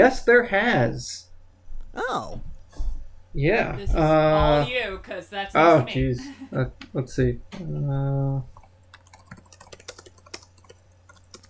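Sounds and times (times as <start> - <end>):
speech: 0.0 - 1.3, 2.0 - 2.5, 3.3 - 8.5
computer keyboard typing during a web search: 8.5 - 11.4.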